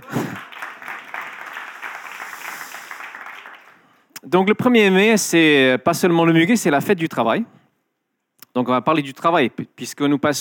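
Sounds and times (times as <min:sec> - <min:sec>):
audience applause: 0:00.0 - 0:03.8
speech: 0:04.2 - 0:07.6, 0:08.6 - 0:10.3.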